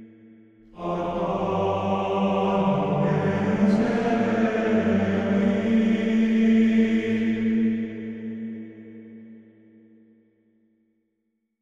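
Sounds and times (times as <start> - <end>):
monk vocals music: 0.7 - 8.6.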